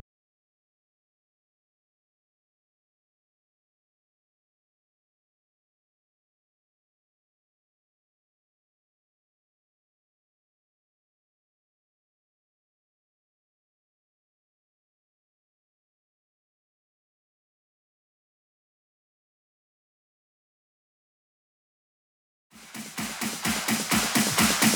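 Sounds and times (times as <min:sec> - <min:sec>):
128 BPM clap build-up: 0:22.6 - 0:24.7.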